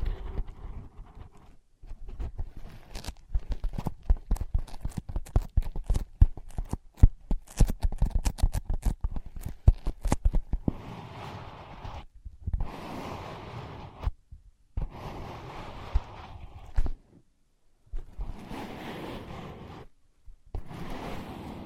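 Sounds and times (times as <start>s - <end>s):
scratching and rubbing on ear pads: 0.0s - 14.2s, 14.8s - 17.2s, 17.9s - 21.6s
tapping on ear pads: 3.3s - 10.7s.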